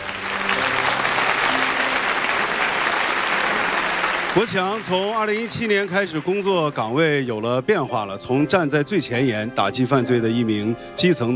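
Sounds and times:
audience applause: 0.0s - 7.2s
speech: 4.4s - 11.3s.

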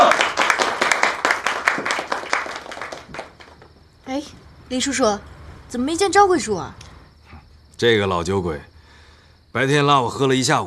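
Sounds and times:
group applauding: 0.0s - 3.8s
speech: 4.7s - 6.8s, 7.8s - 8.7s, 9.5s - 10.6s.

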